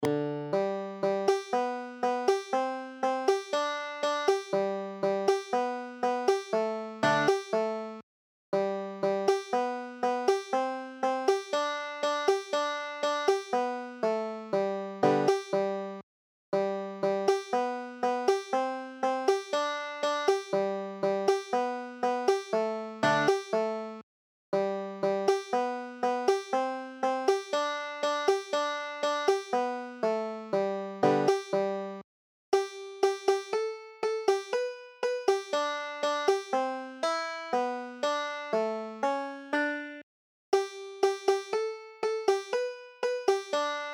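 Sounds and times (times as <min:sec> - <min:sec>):
banjo: 0:00.0 - 0:08.0, 0:08.6 - 0:16.0, 0:16.6 - 0:24.0, 0:24.6 - 0:32.0, 0:32.6 - 0:40.0, 0:40.6 - 0:43.9.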